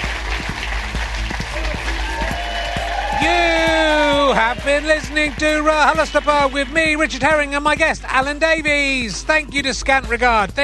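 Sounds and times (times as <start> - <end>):
theatre audience applause at Leicester Theatre: 0.0 - 7.7
cheers and voices: 1.0 - 7.9
speech: 4.4 - 10.6.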